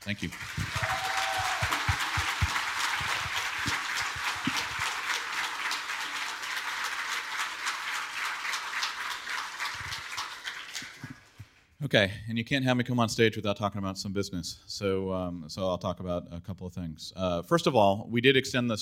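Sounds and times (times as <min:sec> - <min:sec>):
speech: 0:00.0 - 0:01.1, 0:11.9 - 0:18.8
audience applause: 0:00.0 - 0:11.4.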